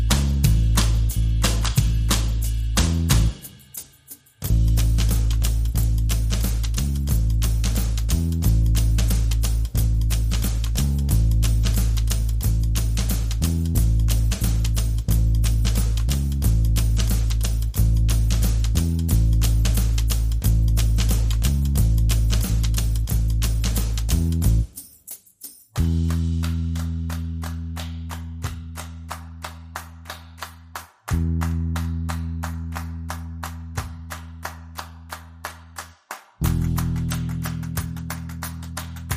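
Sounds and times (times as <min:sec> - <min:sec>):
drums: 0:00.0 - 0:24.8
bass: 0:00.0 - 0:39.1.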